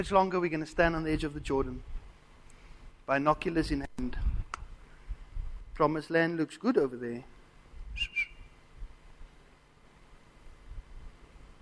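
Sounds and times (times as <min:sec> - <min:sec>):
speech: 0:00.0 - 0:02.0, 0:03.1 - 0:04.3, 0:05.8 - 0:07.3, 0:08.0 - 0:08.2
bird whistling: 0:08.0 - 0:08.5.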